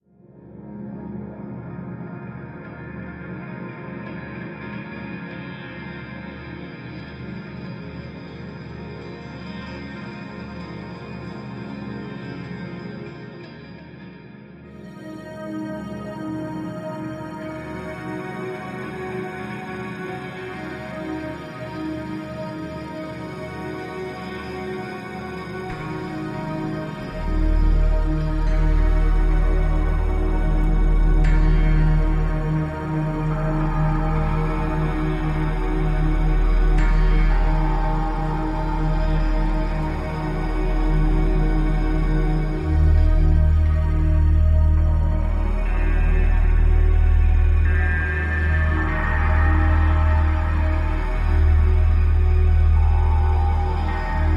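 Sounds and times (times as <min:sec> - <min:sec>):
light drone: 0:14.8 - 0:54.3.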